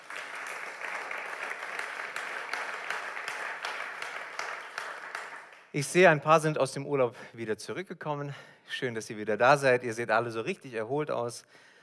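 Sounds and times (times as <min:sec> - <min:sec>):
audience applause: 0:00.0 - 0:05.6
speech: 0:05.8 - 0:11.7.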